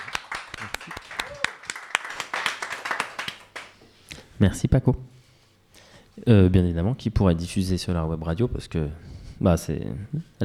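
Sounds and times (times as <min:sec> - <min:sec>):
people clapping: 0:00.0 - 0:03.8
speech: 0:04.4 - 0:05.1, 0:06.2 - 0:10.4.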